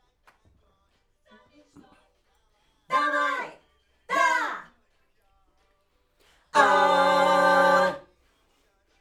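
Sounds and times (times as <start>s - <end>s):
backing vocals on AKG microphone: 6.6s - 8.1s.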